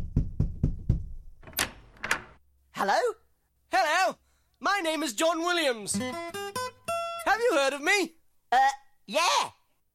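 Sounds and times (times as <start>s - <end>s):
knocking on a door: 0.0s - 1.6s
speech: 2.8s - 3.2s, 4.8s - 6.6s, 7.3s - 9.6s.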